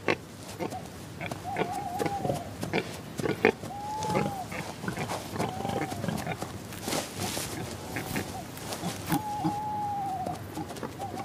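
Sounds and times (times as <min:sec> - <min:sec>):
wild boar grunting and snuffling in a forest at night: 0:00.0 - 0:06.4, 0:07.2 - 0:11.2
short arching whistled calls: 0:01.4 - 0:02.5, 0:03.6 - 0:04.6, 0:08.2 - 0:11.2.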